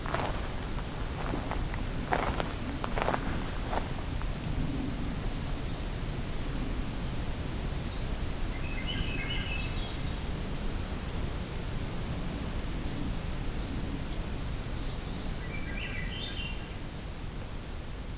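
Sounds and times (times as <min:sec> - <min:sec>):
steady loud hiss of wind-like noise: 0:00.0 - 0:18.1
magnolia warbler singing: 0:00.1 - 0:04.0, 0:07.2 - 0:11.1, 0:14.6 - 0:17.8.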